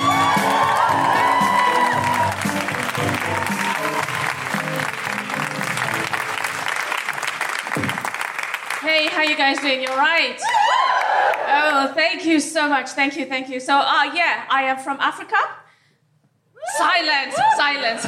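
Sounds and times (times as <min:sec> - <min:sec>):
audience whooping and shouting for a stand-up comic: 0:00.0 - 0:05.7, 0:10.4 - 0:11.7, 0:16.6 - 0:18.0
audience clapping for a stand-up comic: 0:00.0 - 0:11.6
speech: 0:09.2 - 0:10.6, 0:11.6 - 0:15.6, 0:16.9 - 0:18.0.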